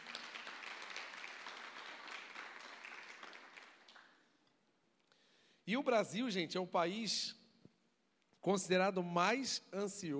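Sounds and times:
audience applauding: 0.0s - 4.2s
speech: 5.7s - 7.4s, 8.4s - 10.1s.

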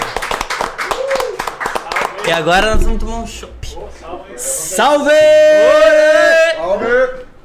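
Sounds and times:
audience clapping: 0.0s - 2.6s
speech: 2.3s - 7.2s.

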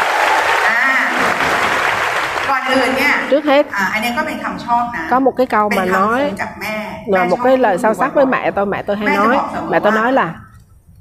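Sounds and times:
loud audience applause: 0.0s - 3.6s
speech: 2.7s - 10.4s.

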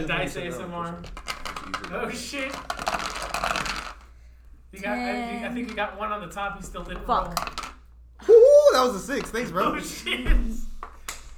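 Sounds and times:
speech: 0.0s - 3.0s, 4.7s - 7.6s, 8.2s - 10.7s
dice rolling on a table: 0.8s - 4.2s, 5.5s - 6.0s, 6.6s - 8.0s, 9.0s - 9.6s.

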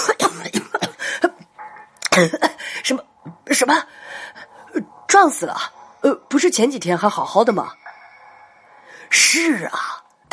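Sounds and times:
man coughing after choking on a mouthful of liquor: 0.0s - 1.4s
speech: 2.2s - 7.9s, 9.1s - 10.0s.

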